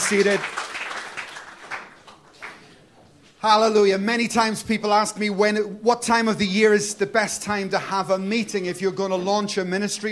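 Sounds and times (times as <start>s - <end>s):
audience applauding: 0.0s - 2.8s
speech: 0.1s - 0.6s, 3.4s - 10.0s.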